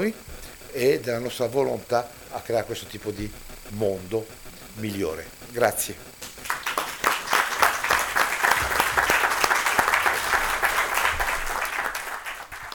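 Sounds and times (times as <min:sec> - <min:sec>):
speech: 0:00.0 - 0:06.1
audience applause: 0:06.2 - 0:12.7.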